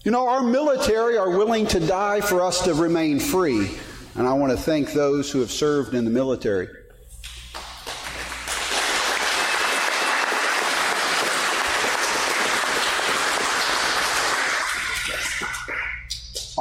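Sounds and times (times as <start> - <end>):
speech: 0.0 - 6.8
audience applause: 7.6 - 15.9.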